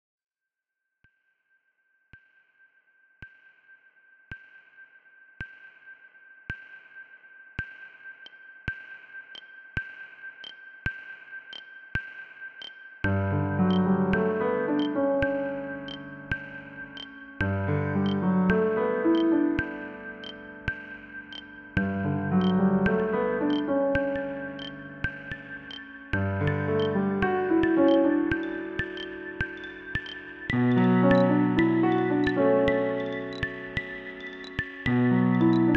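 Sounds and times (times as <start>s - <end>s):
piano: 13.0s - 35.7s.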